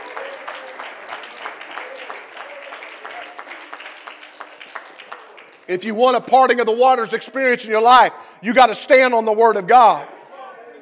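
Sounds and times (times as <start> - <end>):
audience clapping hands: 0.0 - 6.4
speech: 5.7 - 10.2.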